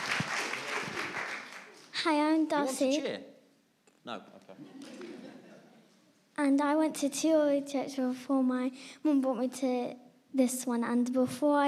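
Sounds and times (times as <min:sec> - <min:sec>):
audience applause: 0:00.0 - 0:02.0
laughter: 0:00.3 - 0:01.9, 0:04.2 - 0:06.0
speech: 0:02.0 - 0:03.3, 0:04.0 - 0:05.0, 0:06.4 - 0:11.6.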